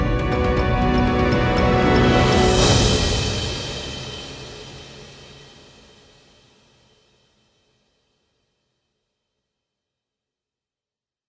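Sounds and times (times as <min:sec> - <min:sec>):
field background music: 0:00.0 - 0:05.9.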